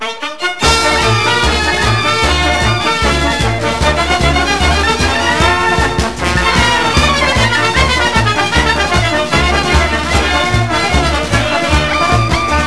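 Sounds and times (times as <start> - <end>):
bulgar dance music: 0.4 - 12.6.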